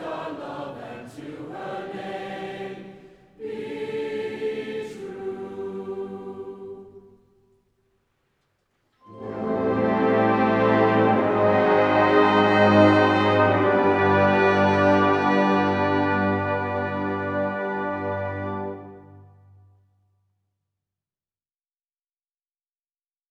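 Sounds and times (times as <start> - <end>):
marching band: 9.0 - 19.5.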